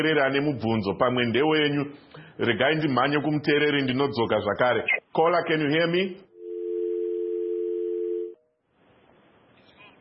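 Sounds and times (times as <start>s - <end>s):
speech: 0.0s - 6.3s
telephone dial tone on a call-in line: 6.4s - 8.4s.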